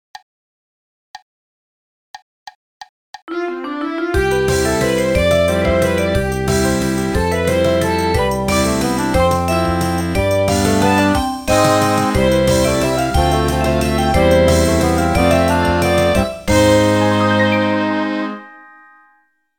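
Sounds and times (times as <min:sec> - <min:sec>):
TV channel opening MIDI music: 0:03.3 - 0:19.2.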